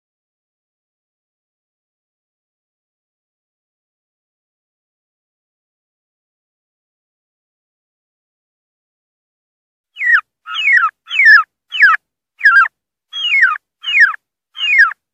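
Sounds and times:
wild turkey distress calling: 10.0s - 15.0s.

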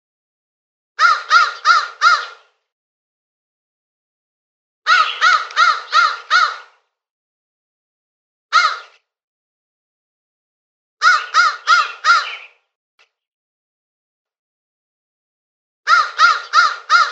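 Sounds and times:
crow uttering rasping caws: 1.0s - 2.5s, 4.9s - 6.8s, 8.5s - 9.0s, 11.0s - 12.6s, 15.9s - 17.0s.

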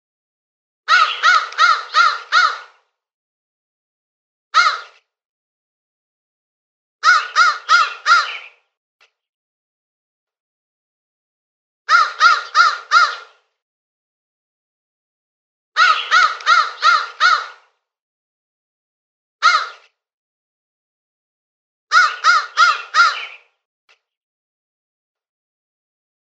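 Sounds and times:
crow cawing with harsh rasping notes: 0.9s - 2.8s, 4.6s - 5.0s, 7.0s - 8.6s, 11.9s - 13.4s, 15.8s - 17.8s, 19.4s - 19.8s, 21.9s - 23.5s.

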